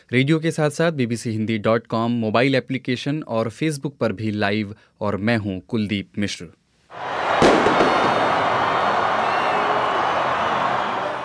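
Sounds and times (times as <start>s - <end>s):
speech: 0.0s - 7.1s
street celebration in Zagreb after a World Cup semifinal: 6.9s - 11.2s
fireworks: 7.1s - 8.8s.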